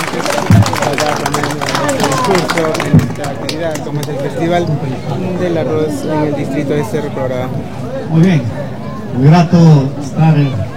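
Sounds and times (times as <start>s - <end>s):
loud applause: 0.0s - 4.6s
speech: 0.2s - 0.4s, 2.6s - 10.7s.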